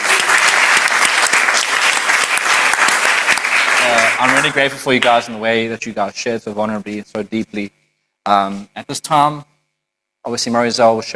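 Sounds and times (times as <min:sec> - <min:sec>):
audience applause: 0:00.0 - 0:05.2
speech: 0:03.8 - 0:09.5, 0:10.2 - 0:11.1.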